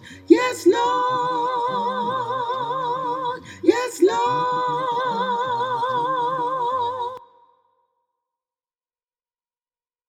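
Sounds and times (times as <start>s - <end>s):
alto voice singing a carol: 0.0s - 7.2s.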